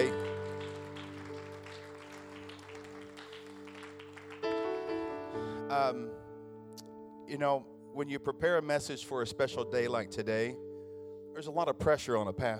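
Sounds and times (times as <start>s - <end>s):
audience applause: 0.0s - 5.2s
held keyboard notes: 0.0s - 12.5s
sustained organ chord: 0.0s - 12.5s
speech: 5.8s - 6.2s, 7.3s - 10.6s, 11.4s - 12.5s.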